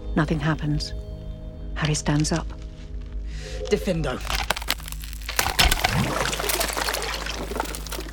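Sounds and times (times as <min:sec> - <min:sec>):
speech: 0:00.2 - 0:01.1, 0:01.8 - 0:02.6, 0:03.6 - 0:04.4
ice cracking open over water: 0:03.6 - 0:08.1
water splashing and trickling: 0:04.3 - 0:08.1.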